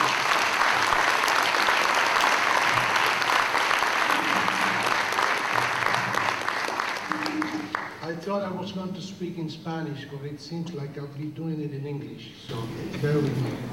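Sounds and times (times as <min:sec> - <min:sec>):
crowd applause: 0:00.0 - 0:08.1
speech: 0:08.3 - 0:13.7.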